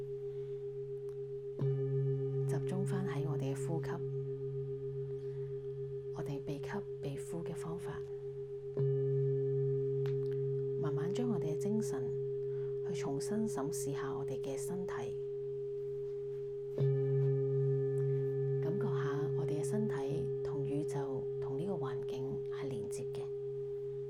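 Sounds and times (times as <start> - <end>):
singing bowl ringing for crown chakra meditation: 0.0 - 24.0
person speaking: 2.5 - 4.1, 6.2 - 8.2, 10.8 - 12.2, 12.8 - 15.2, 18.6 - 23.3.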